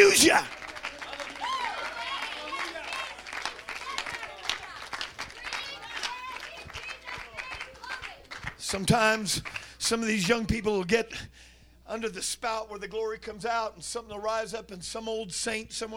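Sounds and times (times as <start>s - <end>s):
audience clapping hands: 0.0s - 10.6s
voices calling out and cheering: 0.0s - 10.9s
speech: 8.7s - 15.9s.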